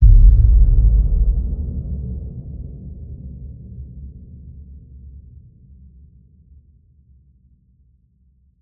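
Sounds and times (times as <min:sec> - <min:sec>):
designed cinematic boom hits: 0:00.0 - 0:02.8.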